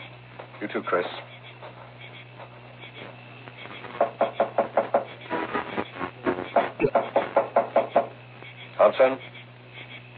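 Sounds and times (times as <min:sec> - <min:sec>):
speech: 0:00.6 - 0:01.4, 0:08.9 - 0:09.3
heavy pounding on a door as police demand entry: 0:04.0 - 0:05.1, 0:06.6 - 0:08.1.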